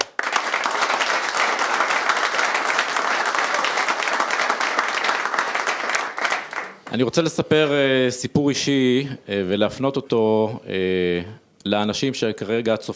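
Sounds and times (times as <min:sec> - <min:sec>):
audience applause: 0:00.0 - 0:06.9
speech: 0:07.0 - 0:12.9.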